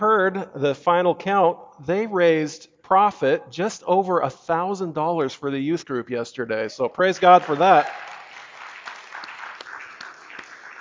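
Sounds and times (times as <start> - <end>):
speech: 0.0 - 8.1
audience applause: 7.3 - 10.7.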